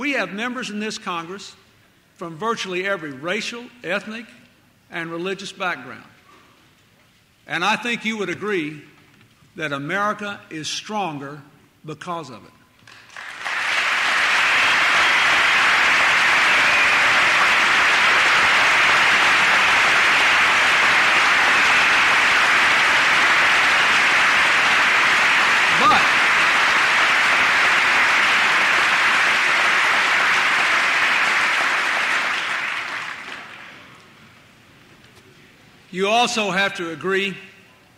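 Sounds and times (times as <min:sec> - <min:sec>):
speech: 0:00.0 - 0:01.6, 0:02.2 - 0:06.1, 0:07.5 - 0:08.9, 0:09.6 - 0:13.0, 0:36.0 - 0:37.5
large audience applause in Congress: 0:12.9 - 0:33.9.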